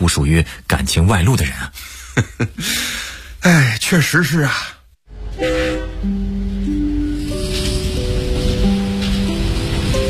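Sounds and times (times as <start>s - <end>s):
speech: 0.0s - 4.8s, 5.4s - 6.3s
rumble and hiss of a passing train: 5.1s - 10.0s
train horn blasts: 5.2s - 6.2s.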